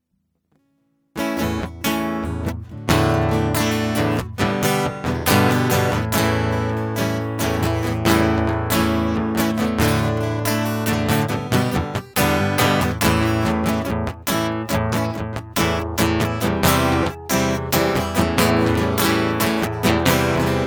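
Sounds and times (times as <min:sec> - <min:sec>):
instrumental music: 0:01.2 - 0:20.6.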